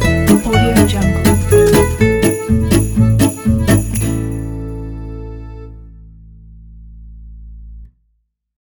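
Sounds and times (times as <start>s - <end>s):
swing music: 0.0s - 5.7s.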